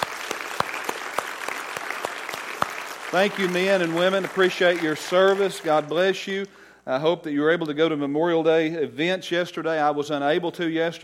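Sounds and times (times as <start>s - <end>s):
audience clapping for military veterans: 0.0s - 6.5s
speech: 3.1s - 11.0s.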